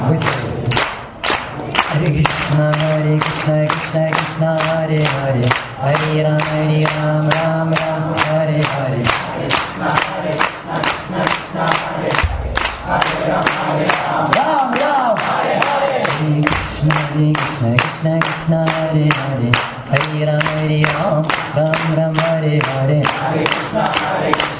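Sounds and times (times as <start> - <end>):
rhythmic hand clapping: 0.0 - 24.5
group chanting in melodic voices: 5.9 - 17.5, 22.6 - 24.5.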